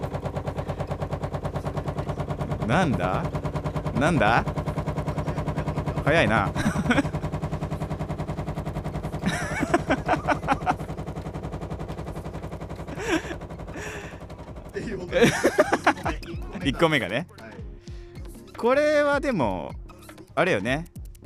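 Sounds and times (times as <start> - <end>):
washing machine running: 0.0 - 16.9
speech: 2.7 - 4.6, 6.1 - 7.1, 15.1 - 15.6, 16.6 - 17.4, 18.6 - 19.8, 20.4 - 20.9
laughter: 5.3 - 7.4, 9.2 - 11.0, 12.9 - 14.2, 14.8 - 17.1.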